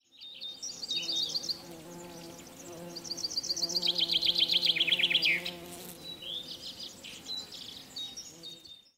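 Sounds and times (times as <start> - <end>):
bee buzzing: 1.2 - 6.7.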